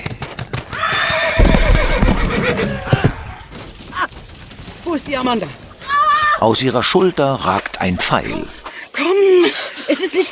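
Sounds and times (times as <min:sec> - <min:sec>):
faint hoof clops: 0:00.0 - 0:08.6
horse whinnying: 0:00.7 - 0:03.4
speech: 0:04.9 - 0:05.6, 0:06.4 - 0:08.6, 0:09.2 - 0:10.3.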